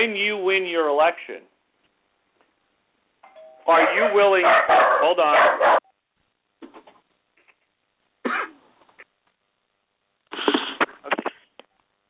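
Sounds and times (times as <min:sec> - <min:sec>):
speech: 0:00.0 - 0:01.6, 0:03.7 - 0:05.8
small puppy barking after doorbell: 0:03.7 - 0:05.9.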